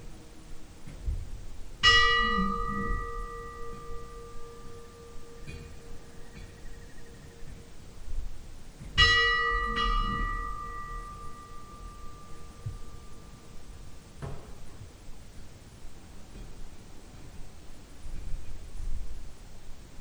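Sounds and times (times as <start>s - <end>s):
Hjarðarholt church funeral bell ringing: 0.0s - 15.2s.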